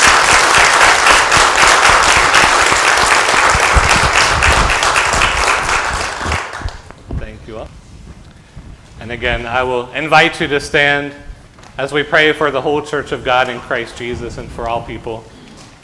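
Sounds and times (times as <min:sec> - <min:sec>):
audience applause: 0:00.0 - 0:06.9
speech: 0:09.1 - 0:15.8.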